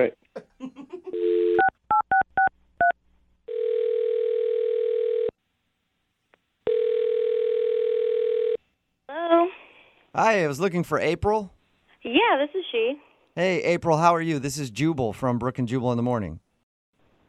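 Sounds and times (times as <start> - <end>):
speech: 0.0 - 0.2, 10.2 - 16.4
telephone number being dialed with DTMF tones: 1.2 - 5.3, 6.7 - 8.6.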